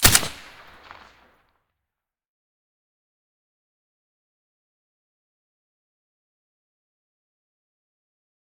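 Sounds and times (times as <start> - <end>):
SCAR rifle firing with silencer: 0.0 - 1.2.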